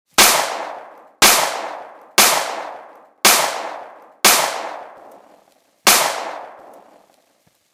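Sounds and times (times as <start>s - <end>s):
gunshots: 0.2s - 5.2s, 5.9s - 7.0s.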